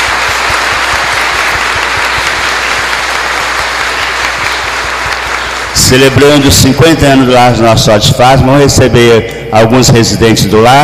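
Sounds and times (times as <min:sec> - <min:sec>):
audience applauding: 0:00.0 - 0:06.6
speech: 0:05.9 - 0:10.8.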